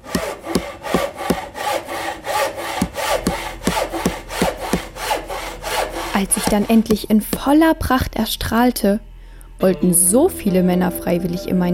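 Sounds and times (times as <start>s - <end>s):
hand saw cutting wood during construction: 0.0s - 7.5s
speech: 6.2s - 11.7s.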